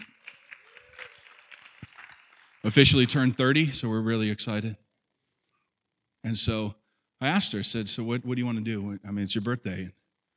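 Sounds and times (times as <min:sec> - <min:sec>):
audience applause: 0:00.0 - 0:03.6
speech: 0:02.6 - 0:04.8, 0:06.2 - 0:10.0.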